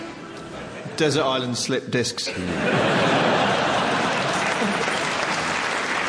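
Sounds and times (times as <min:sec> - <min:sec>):
laughter: 0:00.3 - 0:01.0, 0:02.3 - 0:05.3
speech: 0:01.0 - 0:03.3
audience clapping: 0:03.2 - 0:06.0.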